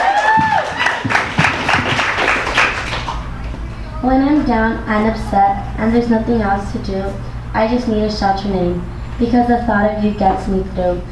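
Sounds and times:
audience applause for a reader at a reading event: 0:00.0 - 0:05.2
speech: 0:04.0 - 0:11.0.

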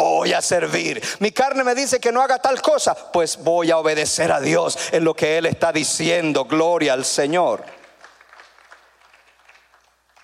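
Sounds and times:
speech: 0:00.2 - 0:07.8
audience applauding: 0:07.6 - 0:10.2.

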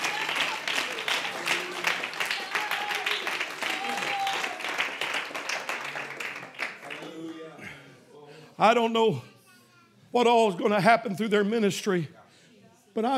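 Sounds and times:
church congregation applauding during a service: 0:00.0 - 0:07.6
speech: 0:08.6 - 0:09.3, 0:10.1 - 0:12.2, 0:13.0 - 0:13.1.

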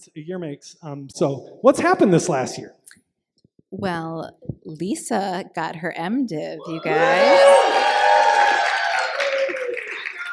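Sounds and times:
speech: 0:00.0 - 0:03.0, 0:03.7 - 0:08.0
voices cheering: 0:06.6 - 0:10.3
audience applause: 0:06.9 - 0:10.3.

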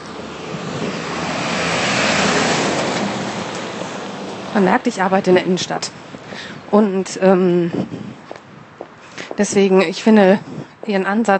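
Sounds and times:
truck driving past outside: 0:00.0 - 0:05.4
speech: 0:04.6 - 0:08.2, 0:09.4 - 0:11.3.

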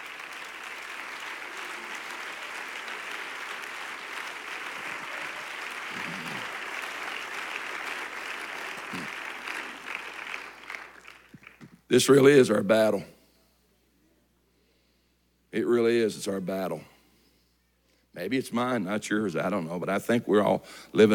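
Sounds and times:
audience clapping: 0:00.0 - 0:11.9
speech: 0:11.9 - 0:13.2, 0:16.2 - 0:16.9, 0:18.2 - 0:21.1.

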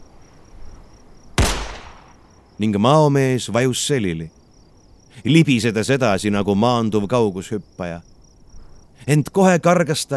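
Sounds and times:
high-pitched insect chirping: 0:00.0 - 0:10.1
gunshot: 0:01.4 - 0:02.2
speech: 0:02.6 - 0:04.4, 0:05.2 - 0:08.1, 0:09.0 - 0:10.1.

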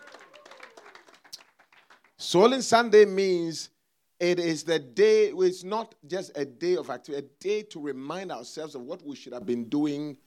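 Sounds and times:
audience clapping: 0:00.0 - 0:02.2
speech: 0:02.3 - 0:10.2.

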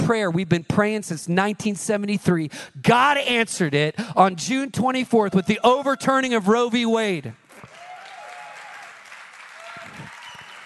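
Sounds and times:
speech: 0:00.1 - 0:07.4
weak audience clapping: 0:07.4 - 0:10.6.

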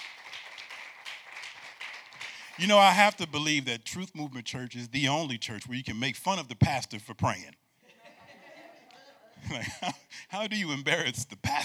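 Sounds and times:
crowd applauding: 0:00.0 - 0:03.6
laughter: 0:02.2 - 0:03.7, 0:07.2 - 0:11.6
speech: 0:02.6 - 0:07.6, 0:09.4 - 0:11.6.

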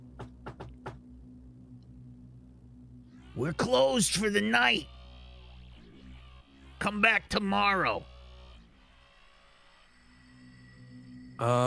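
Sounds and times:
steady low hum: 0:00.0 - 0:11.6
knocking on a door: 0:00.2 - 0:01.0
speech: 0:03.4 - 0:04.9, 0:06.8 - 0:08.1, 0:11.4 - 0:11.6.

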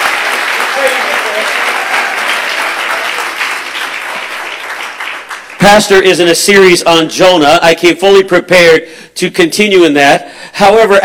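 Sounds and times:
audience clapping hands: 0:00.0 - 0:06.0
speech: 0:05.6 - 0:11.0.

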